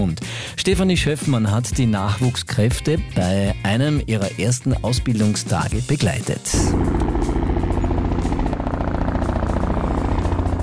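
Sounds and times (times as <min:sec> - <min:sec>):
speech: 0:00.0 - 0:07.5
helicopter engine and rotor blades up close: 0:06.5 - 0:10.6.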